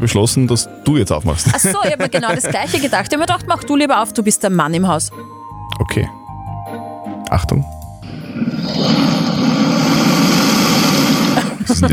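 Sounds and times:
speech: 0:00.0 - 0:06.2, 0:07.3 - 0:07.8, 0:11.7 - 0:11.9
laughter: 0:01.3 - 0:03.3, 0:11.3 - 0:11.9
crocodile bellowing: 0:08.0 - 0:11.6.

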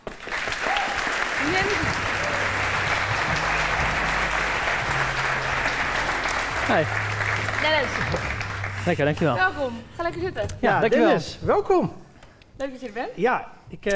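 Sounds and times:
crowd applauding: 0:00.0 - 0:09.4
speech: 0:06.7 - 0:12.0, 0:12.6 - 0:13.9.

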